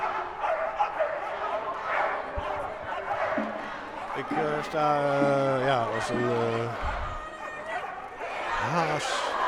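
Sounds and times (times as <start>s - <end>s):
police dogs barking: 0.0s - 4.1s
speech: 4.2s - 7.0s, 8.6s - 9.3s.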